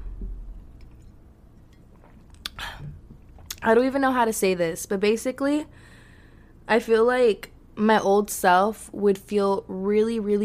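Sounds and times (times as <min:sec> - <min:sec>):
sipping a drink from a podcast mug: 0:01.0 - 0:03.6
speech: 0:03.6 - 0:05.9, 0:06.7 - 0:10.4.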